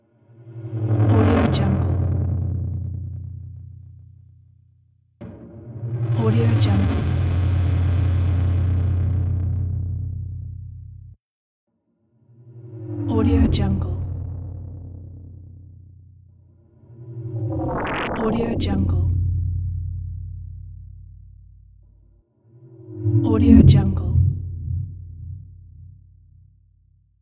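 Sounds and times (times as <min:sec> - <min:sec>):
cosmic transition sound: 0:00.2 - 0:02.7, 0:05.2 - 0:09.6, 0:12.3 - 0:15.6, 0:16.7 - 0:19.8, 0:22.5 - 0:26.0.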